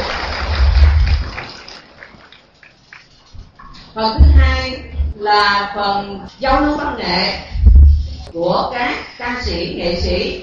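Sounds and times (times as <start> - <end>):
round of applause: 0.0 - 3.2
speech: 4.0 - 7.5, 8.2 - 10.4.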